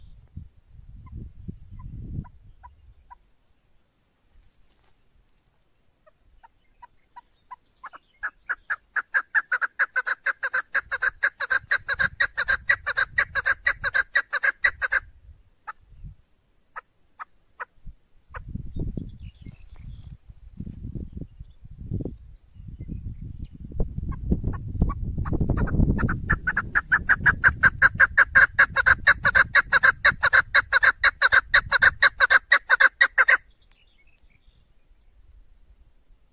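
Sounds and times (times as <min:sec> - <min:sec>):
female partridge calling: 0:06.0 - 0:15.8, 0:24.1 - 0:33.5.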